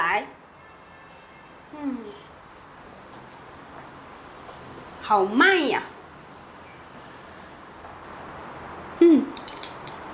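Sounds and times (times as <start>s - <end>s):
speech: 0.2s - 0.4s, 5.1s - 5.9s
keys jingling: 9.3s - 10.0s.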